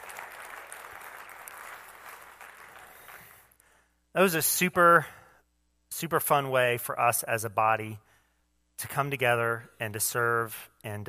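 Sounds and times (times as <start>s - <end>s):
audience applause: 0.0s - 3.5s
speech: 4.2s - 5.2s, 6.0s - 8.1s, 8.8s - 11.0s.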